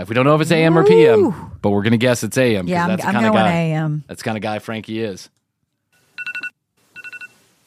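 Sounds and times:
speech: 0.0 - 5.4
phone alarm going off: 6.2 - 7.4.

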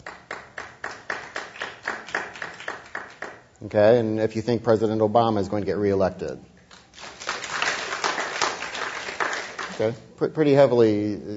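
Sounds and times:
audience clapping: 0.0 - 3.5, 6.7 - 10.0
speech: 3.6 - 6.5, 9.8 - 11.3.

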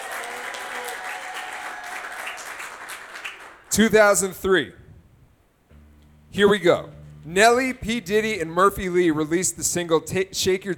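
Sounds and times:
studio audience on a game show applauding and cheering: 0.0 - 3.6
speech: 3.7 - 4.8, 6.4 - 10.7.

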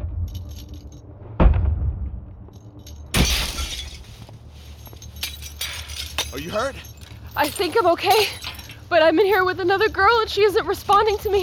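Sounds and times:
scattered debris tinkling: 0.2 - 1.0, 2.5 - 11.4
plexiglass being smashed: 3.1 - 4.1
speech: 6.3 - 11.4.

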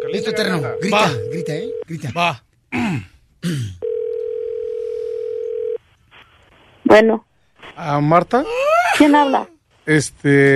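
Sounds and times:
telephone ringing tone during a call: 0.0 - 1.9, 3.8 - 5.8
speech: 0.1 - 3.8, 6.9 - 10.5.

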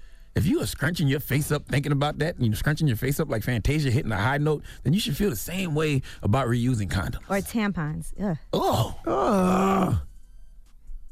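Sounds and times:
speech: 0.4 - 10.1
man grunting: 8.6 - 10.1.

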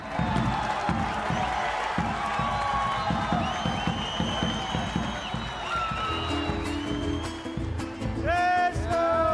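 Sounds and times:
audience applause: 0.0 - 8.1
crowd cheering: 0.0 - 9.3
shrill whistles: 1.3 - 8.1.

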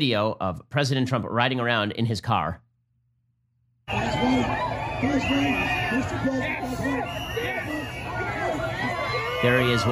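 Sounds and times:
speech: 0.0 - 2.6, 3.9 - 8.0, 9.4 - 9.9
crowd of supporters cheering and shouting outdoors: 3.9 - 9.9.

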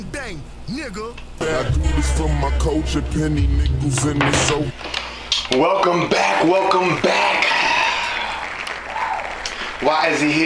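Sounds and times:
speech: 0.3 - 4.8, 5.5 - 7.4, 9.8 - 10.4
hand clapping: 8.3 - 10.4.

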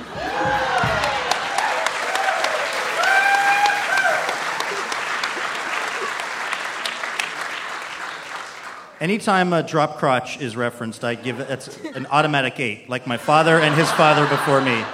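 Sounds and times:
crowd cheering: 0.0 - 9.0, 13.2 - 14.9
laughter: 4.4 - 6.8, 11.0 - 14.9
speech: 9.0 - 14.9.

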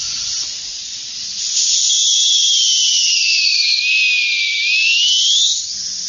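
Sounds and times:
multi-tone dog whistle being blown: 1.8 - 5.6.

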